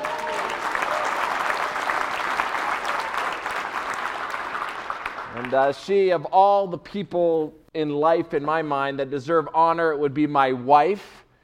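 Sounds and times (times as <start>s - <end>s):
crowd applauding: 0.0s - 5.8s
speech: 5.4s - 11.2s.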